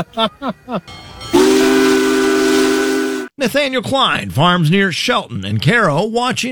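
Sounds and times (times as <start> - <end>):
speech: 0.0 - 1.7, 3.4 - 6.5
locomotive whistle blowing in Shelton: 1.2 - 3.4.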